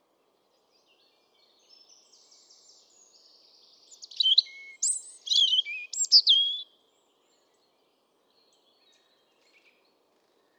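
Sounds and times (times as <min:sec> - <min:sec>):
European robin singing: 0:03.9 - 0:06.7.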